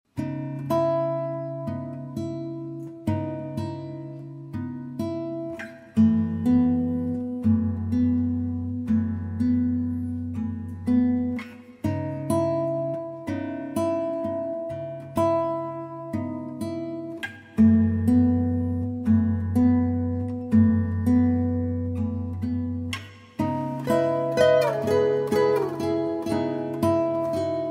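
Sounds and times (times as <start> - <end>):
peaceful guitar: 0.0 - 27.7.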